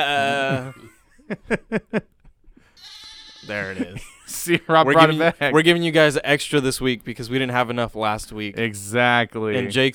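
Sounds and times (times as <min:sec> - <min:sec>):
laughter: 0:00.0 - 0:02.1, 0:03.5 - 0:05.5
speech: 0:00.0 - 0:02.1, 0:02.8 - 0:09.9
man imitating a goat bleat: 0:02.8 - 0:04.0.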